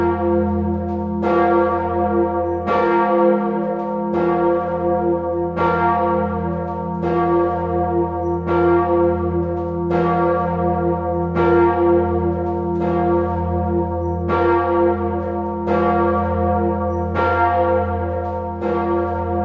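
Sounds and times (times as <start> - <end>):
jubilee bell ringing: 0.0 - 19.4.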